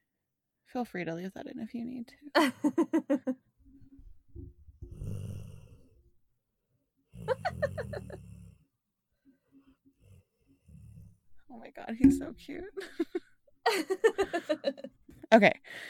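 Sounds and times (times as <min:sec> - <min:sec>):
speech: 0:00.7 - 0:03.5, 0:11.5 - 0:15.8
laughter: 0:02.4 - 0:03.4, 0:07.2 - 0:08.2, 0:12.8 - 0:14.9
pet snoring: 0:04.8 - 0:06.0, 0:07.1 - 0:08.6, 0:09.7 - 0:11.3.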